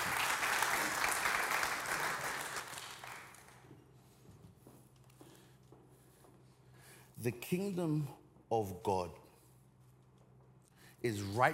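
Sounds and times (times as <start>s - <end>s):
audience applause: 0.0s - 3.7s
speech: 7.2s - 9.2s, 11.0s - 11.5s.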